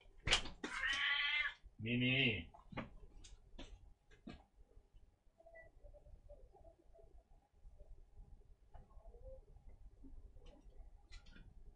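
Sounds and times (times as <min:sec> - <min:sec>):
cat meowing: 0:00.7 - 0:01.6
faint clicks and taps: 0:02.5 - 0:04.6, 0:08.6 - 0:09.0, 0:09.6 - 0:11.7.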